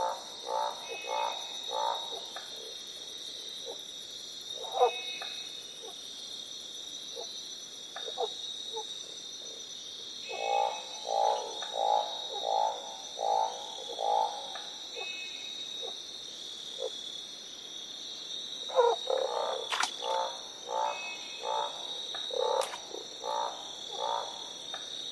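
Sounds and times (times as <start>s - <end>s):
Northern barred frog croaking: 0.0s - 2.4s, 4.6s - 6.0s, 8.0s - 8.9s, 10.2s - 15.2s, 18.6s - 24.9s.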